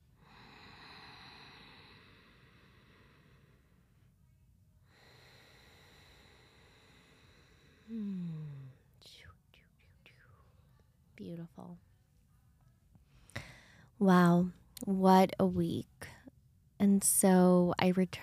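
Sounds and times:
slow deep breathing during a guided heart-centred meditation: 0.0s - 9.0s, 13.0s - 14.0s
speech: 11.2s - 11.9s, 14.0s - 15.9s, 16.8s - 18.2s.

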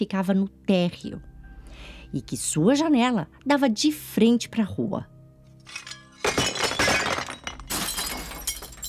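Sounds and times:
speech: 0.0s - 5.9s
dishes and glasses smashing: 5.6s - 8.8s
glass shards clinking: 5.6s - 8.8s.

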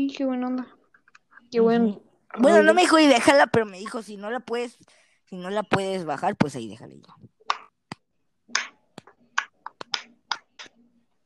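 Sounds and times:
speech: 0.1s - 0.8s, 1.5s - 7.4s
bones or knuckles cracking: 7.3s - 10.9s.

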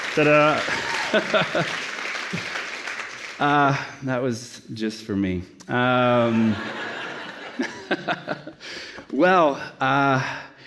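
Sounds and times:
audience applause: 0.0s - 3.7s
laughter: 0.2s - 2.6s, 6.1s - 8.6s
speech: 0.2s - 2.6s, 3.4s - 6.8s, 7.6s - 10.5s.

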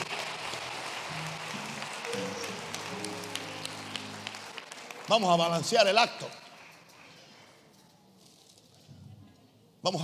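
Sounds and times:
audience applause: 0.0s - 7.4s
speech: 5.1s - 6.4s, 9.8s - 10.0s.

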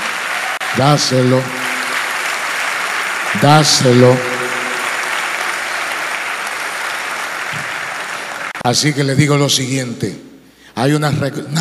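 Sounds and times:
audience applause: 0.0s - 8.6s
speech: 0.7s - 1.6s, 3.3s - 4.4s, 8.6s - 10.2s, 10.8s - 11.6s.

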